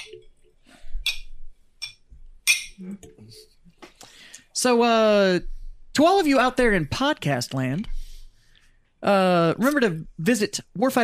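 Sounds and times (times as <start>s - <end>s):
glasses clinking in a toast: 1.1s - 2.8s
speech: 2.8s - 3.6s, 4.6s - 8.0s, 9.0s - 11.0s.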